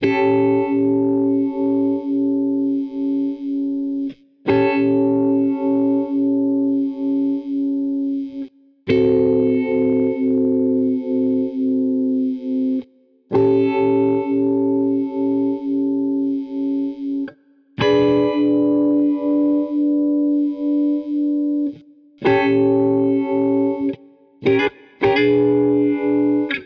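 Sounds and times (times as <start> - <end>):
blues guitar: 0.0 - 26.6.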